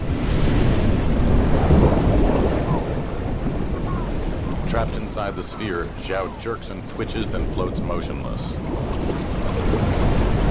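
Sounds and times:
rushing water from four giant streams rising below a bridge: 0:00.0 - 0:10.4
speech: 0:04.8 - 0:10.1.

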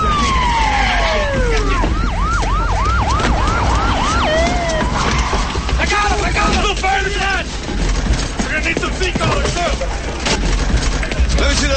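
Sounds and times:
emergency vehicle siren: 0:00.0 - 0:07.6
traffic rumble: 0:00.0 - 0:11.7.

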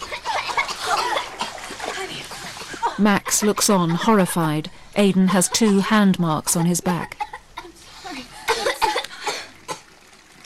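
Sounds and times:
water splashing as a person is pulled up out of a bathtub: 0:00.0 - 0:03.0, 0:07.7 - 0:10.4
vocal sounds: 0:02.8 - 0:07.3
speech: 0:03.0 - 0:07.2.

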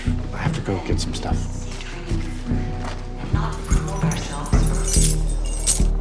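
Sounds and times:
speech: 0:00.7 - 0:03.7
pickup truck keys jangling as they are tossed: 0:03.5 - 0:05.9.

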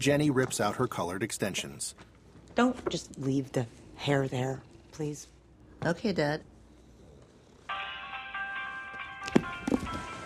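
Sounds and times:
speech: 0:00.0 - 0:06.5
phone alarm melody: 0:07.7 - 0:10.2.

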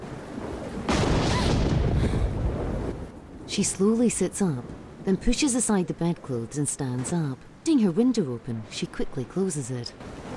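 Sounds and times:
thunder: 0:00.0 - 0:03.5
speech: 0:03.5 - 0:10.2.

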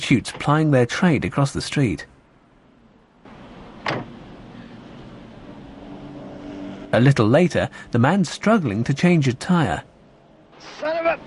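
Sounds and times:
speech: 0:00.1 - 0:02.1, 0:06.9 - 0:09.9, 0:10.6 - 0:11.2
car door opening: 0:03.8 - 0:04.2.

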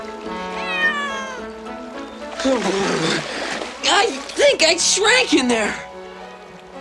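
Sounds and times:
water rushing and splashing: 0:00.0 - 0:06.7
cat meowing: 0:00.4 - 0:01.6
speech: 0:02.4 - 0:05.9.

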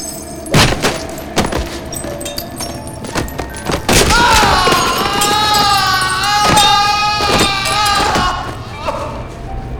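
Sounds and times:
person tumbling down stairs: 0:00.5 - 0:09.5
strained vocal cry: 0:04.0 - 0:09.4.

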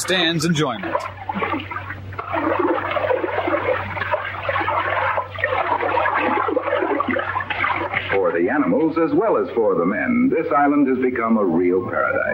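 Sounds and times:
speech: 0:00.0 - 0:01.8, 0:08.4 - 0:12.3
lobster splashing into a pan of water: 0:00.9 - 0:08.2.

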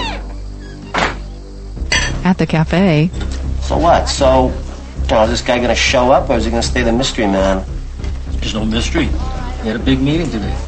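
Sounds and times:
screen door being locked: 0:00.0 - 0:01.4
speech: 0:02.2 - 0:07.7, 0:08.4 - 0:10.6.

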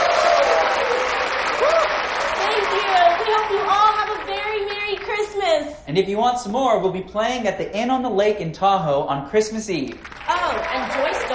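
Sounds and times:
faint whistle or cheer: 0:00.0 - 0:02.2
crowd clapping: 0:00.0 - 0:05.7, 0:09.8 - 0:11.3
speech: 0:05.9 - 0:11.2.

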